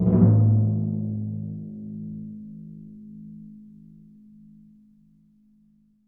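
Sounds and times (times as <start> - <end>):
Synclavier timpani A# note: 0.0 - 2.4.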